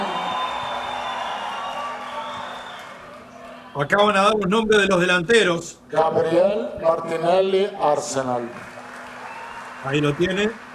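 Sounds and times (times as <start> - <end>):
stadium crowd at a football match applauding: 0.0 - 3.6, 8.1 - 10.7
speech: 3.8 - 8.7, 9.8 - 10.7.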